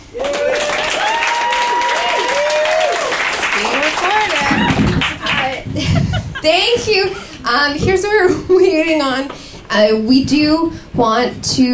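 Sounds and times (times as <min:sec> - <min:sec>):
people cheering and whooping: 0:00.0 - 0:06.5
audience applause: 0:00.0 - 0:07.4
laughter: 0:03.6 - 0:07.4
speech: 0:05.8 - 0:11.7.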